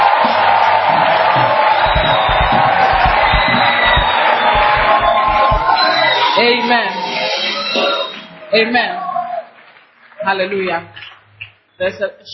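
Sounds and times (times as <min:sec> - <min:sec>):
church congregation clapping in praise: 0:00.0 - 0:05.8
church congregation shouting and whooping in praise: 0:00.0 - 0:07.2
speech: 0:08.5 - 0:09.0, 0:10.2 - 0:11.0, 0:11.8 - 0:12.3.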